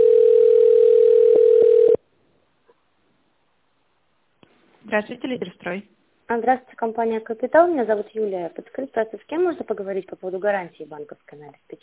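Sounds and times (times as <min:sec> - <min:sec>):
telephone ringback tone while a call is transferred to an administrator: 0:00.0 - 0:02.0
speech: 0:04.9 - 0:11.8.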